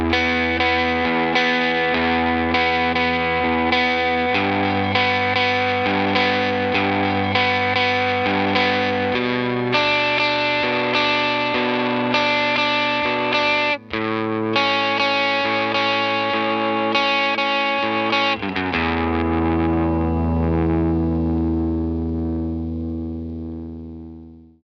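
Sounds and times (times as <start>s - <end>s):
electric guitar arpeggio: 0.0s - 24.6s.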